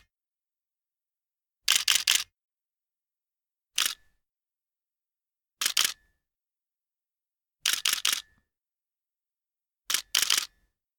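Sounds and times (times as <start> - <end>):
camera shutter: 1.7 - 2.2, 7.7 - 8.2, 9.9 - 10.5.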